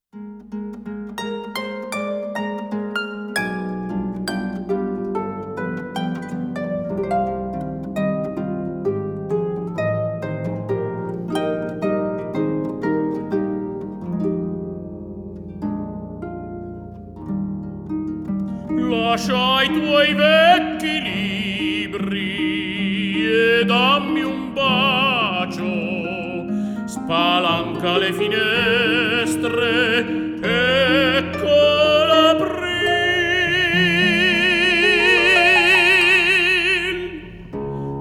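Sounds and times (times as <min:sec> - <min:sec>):
harp: 0:00.1 - 0:37.9
person singing: 0:18.7 - 0:37.9.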